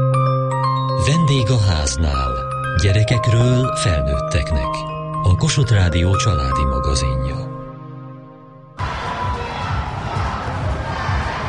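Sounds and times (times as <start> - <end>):
speech: 1.0 - 7.5
crowd cheering: 8.8 - 11.4.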